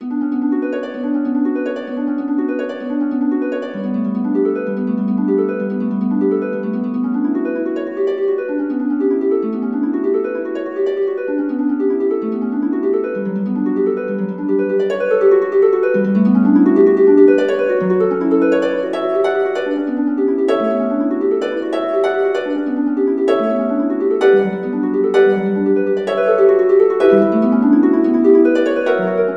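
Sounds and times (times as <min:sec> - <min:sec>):
harp: 0:00.0 - 0:29.3.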